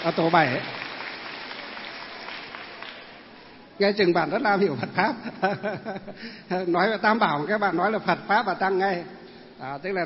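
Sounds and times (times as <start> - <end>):
speech: 0.0 - 0.8, 3.8 - 10.0
round of applause: 0.0 - 3.4
laughter: 4.7 - 6.4.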